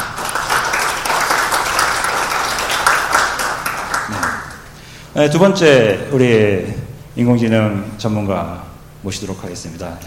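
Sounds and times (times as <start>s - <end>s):
audience applause: 0.0s - 4.7s
speech: 5.2s - 10.0s.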